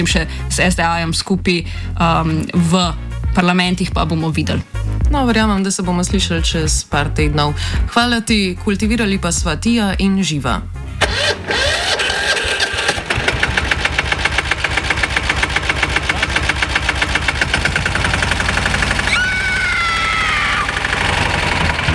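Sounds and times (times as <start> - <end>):
speech: 0.0 - 12.0
small cultivator engine sputtering and chugging: 11.0 - 21.9.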